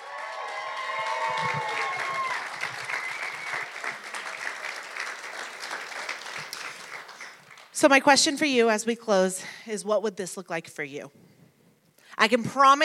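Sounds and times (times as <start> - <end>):
audience applause: 0.0 - 7.7
speech: 7.8 - 11.2, 12.2 - 12.8.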